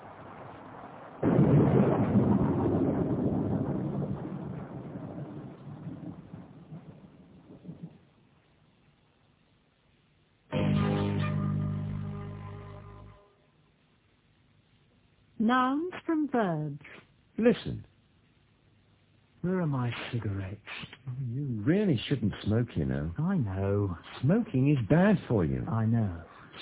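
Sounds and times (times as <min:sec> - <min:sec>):
rain: 0:00.0 - 0:13.1, 0:19.4 - 0:26.5
speech: 0:15.5 - 0:17.9, 0:19.4 - 0:26.5.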